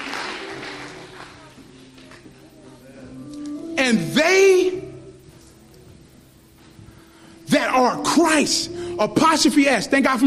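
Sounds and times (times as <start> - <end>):
audience clapping hands in praise: 0.0 - 2.6
speech: 3.8 - 4.8, 7.8 - 10.2.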